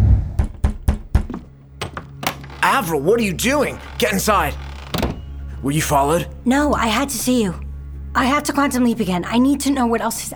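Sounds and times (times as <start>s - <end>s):
urgent knocking on a door: 0.1s - 2.8s, 4.9s - 5.4s
speech: 2.6s - 4.7s, 5.6s - 7.6s, 8.2s - 10.3s.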